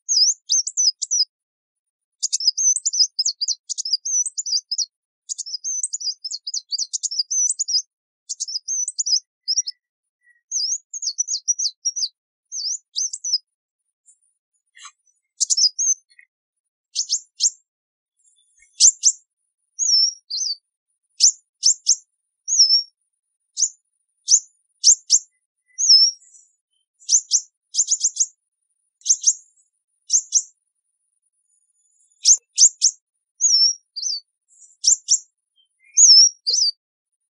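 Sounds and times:
sunbird twittering song: 0:00.1 - 0:01.3, 0:02.2 - 0:13.5, 0:14.8 - 0:16.3, 0:17.0 - 0:17.6, 0:18.2 - 0:19.2, 0:19.8 - 0:20.6, 0:21.2 - 0:23.0, 0:23.6 - 0:28.3, 0:29.0 - 0:30.5, 0:31.8 - 0:36.8.

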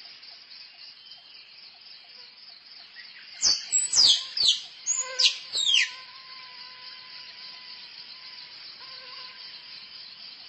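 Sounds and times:
squirrel chirping: 0:03.4 - 0:05.9.

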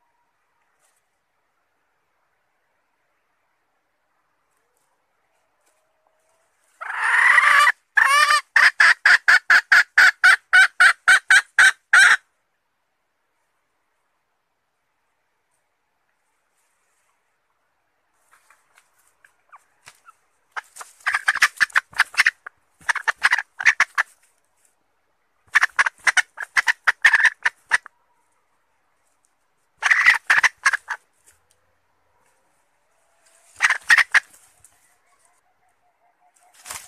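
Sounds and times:
red junglefowl hen cackling: 0:04.6 - 0:12.2, 0:18.2 - 0:24.3, 0:25.4 - 0:28.6, 0:29.8 - 0:36.8.

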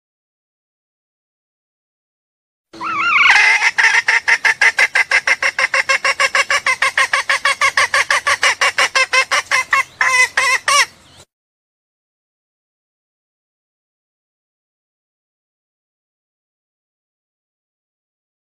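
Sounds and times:
junglefowl clucking: 0:02.8 - 0:11.0.

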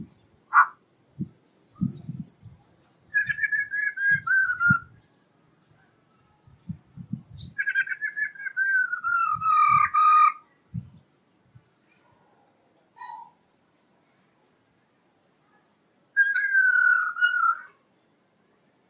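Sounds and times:
black-throated laughingthrush song of whistles and a harsh burst: 0:03.1 - 0:05.0, 0:07.4 - 0:10.4, 0:16.2 - 0:17.8.

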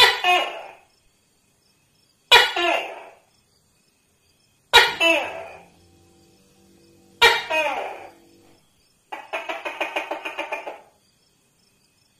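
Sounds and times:
Tokay gecko barking: 0:00.0 - 0:00.8, 0:04.7 - 0:10.8
faint low hum: 0:03.8 - 0:10.4.

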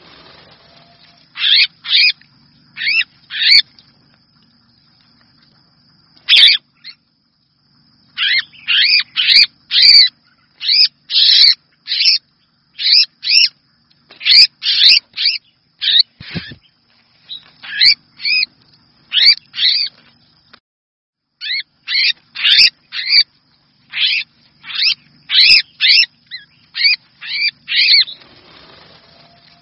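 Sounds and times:
red-whiskered bulbul distress call: 0:00.0 - 0:02.2, 0:02.8 - 0:03.7, 0:06.3 - 0:07.0, 0:08.1 - 0:18.5, 0:19.1 - 0:20.0, 0:21.4 - 0:23.3, 0:23.9 - 0:29.6.

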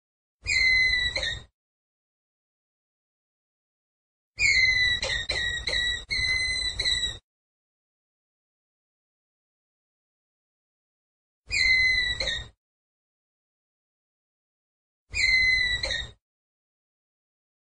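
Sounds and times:
ground squirrel whistled call: 0:00.4 - 0:01.5, 0:04.4 - 0:07.2, 0:11.5 - 0:12.5, 0:15.1 - 0:16.2.

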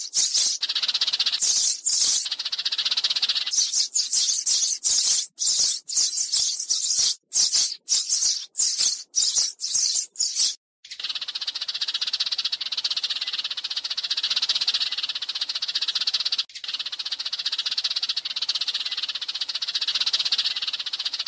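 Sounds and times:
sparrow chattering rattle: 0:00.0 - 0:21.2.

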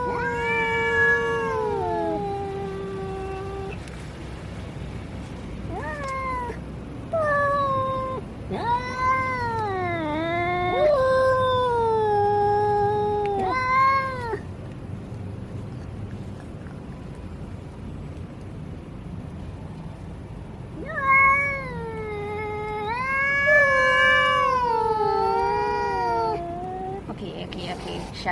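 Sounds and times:
domestic cat yowling: 0:00.0 - 0:03.8, 0:05.7 - 0:14.4, 0:20.8 - 0:27.1.

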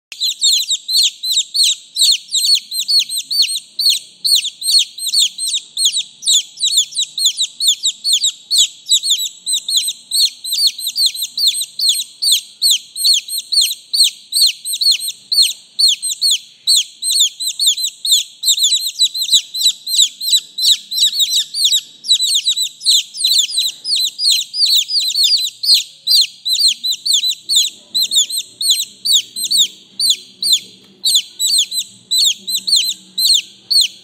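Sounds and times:
chicken chicks cheeping: 0:00.1 - 0:34.0.

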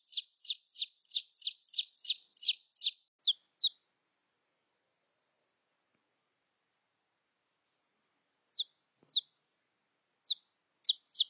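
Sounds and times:
red junglefowl chick peeps: 0:00.0 - 0:03.8, 0:08.5 - 0:09.4, 0:10.2 - 0:11.2.

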